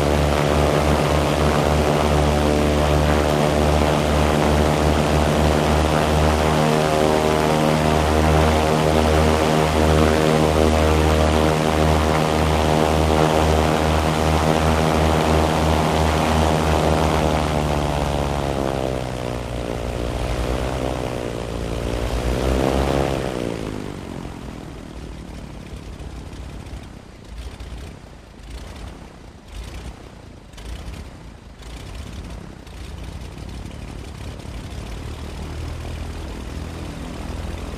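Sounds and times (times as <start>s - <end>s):
prop plane engine sporadic popping: 0.0s - 24.0s
prop plane propeller buzzing: 0.0s - 37.7s.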